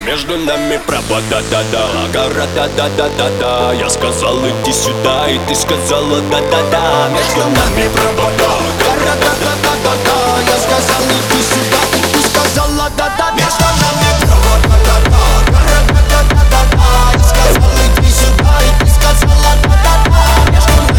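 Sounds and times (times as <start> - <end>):
techno remix: 0.0 - 20.9.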